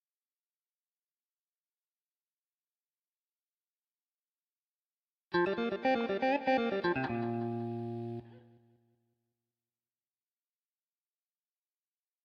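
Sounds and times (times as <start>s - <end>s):
jazz guitar: 5.4s - 8.3s.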